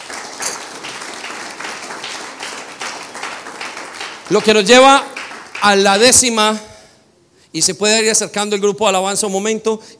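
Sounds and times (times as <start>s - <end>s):
audience applause: 0.0s - 6.2s
speech: 4.3s - 6.7s, 7.5s - 9.9s.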